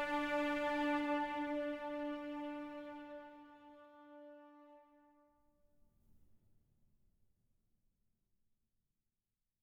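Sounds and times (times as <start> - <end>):
neutral travel music: 0.0 - 4.4.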